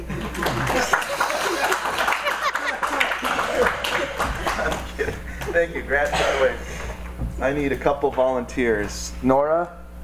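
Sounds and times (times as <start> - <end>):
audience clapping: 0.0 - 5.7
murmured voices and chuckles: 0.0 - 7.1
speech: 5.6 - 6.7, 7.4 - 9.8.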